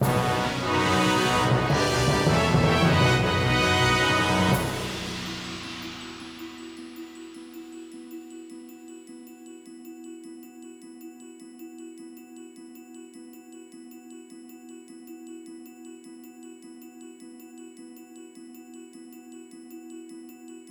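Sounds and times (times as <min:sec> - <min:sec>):
dungeon floor clear jingle: 0:00.0 - 0:07.0.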